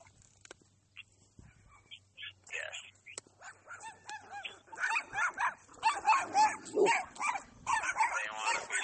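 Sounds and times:
dogs barking: 3.2 - 8.8.

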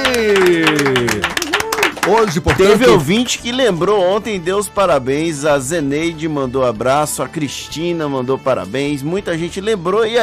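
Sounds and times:
applause: 0.0 - 3.4
speech: 2.2 - 10.2.

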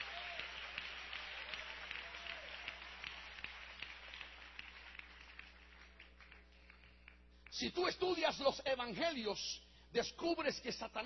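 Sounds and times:
audience clapping applause: 0.0 - 7.0
speech: 7.6 - 11.0.

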